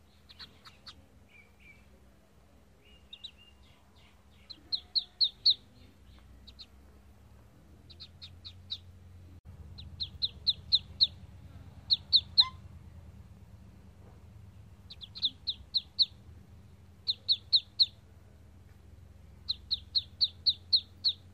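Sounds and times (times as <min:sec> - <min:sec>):
duckling peeping: 0:00.0 - 0:01.9, 0:02.8 - 0:06.8, 0:07.8 - 0:09.0, 0:09.7 - 0:12.7, 0:14.8 - 0:16.3, 0:17.0 - 0:18.0, 0:19.4 - 0:21.3.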